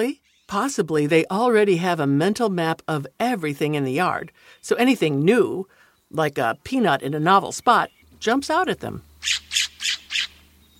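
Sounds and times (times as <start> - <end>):
speech: 0.0 - 9.7
California Scrub-Jay harsh calls: 9.2 - 10.6.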